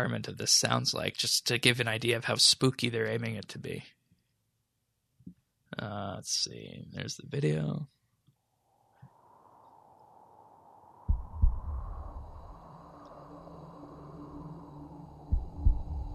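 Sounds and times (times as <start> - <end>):
speech: 0.0 - 4.0, 5.7 - 8.0
wind howling: 8.4 - 16.1.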